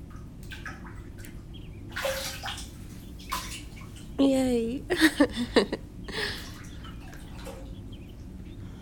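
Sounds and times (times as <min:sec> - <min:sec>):
water splashing in a bathtub: 0:00.0 - 0:04.2, 0:06.3 - 0:07.8
speech: 0:04.2 - 0:05.8.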